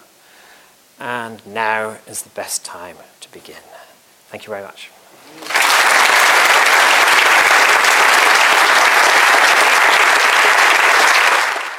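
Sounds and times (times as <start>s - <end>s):
speech: 1.0s - 5.6s
audience applause after a talk: 5.3s - 11.7s.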